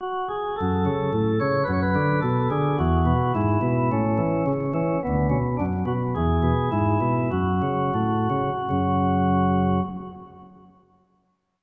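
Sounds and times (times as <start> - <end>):
organ playing: 0.0 - 10.7.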